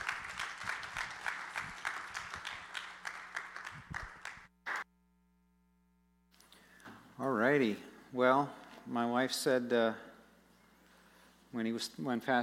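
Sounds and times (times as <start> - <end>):
audience applause welcoming a speaker at a global outreach celebration: 0.0 - 4.8
faint steady hum: 4.5 - 12.4
speech: 7.2 - 10.1, 11.6 - 12.4.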